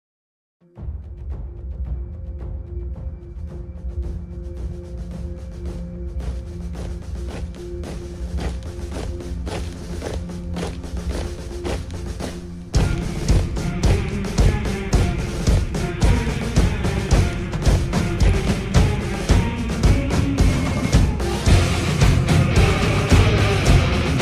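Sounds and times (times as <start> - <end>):
Ukrainian military march song: 5.4 - 24.1.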